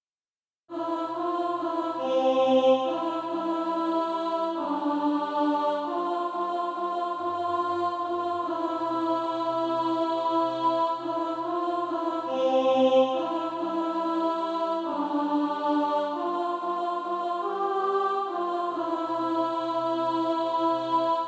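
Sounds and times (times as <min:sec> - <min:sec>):
alto voice singing: 0:00.7 - 0:21.2.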